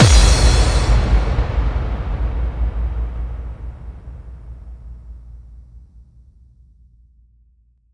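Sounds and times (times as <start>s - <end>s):
effect kick drum hits: 0.0s - 3.8s.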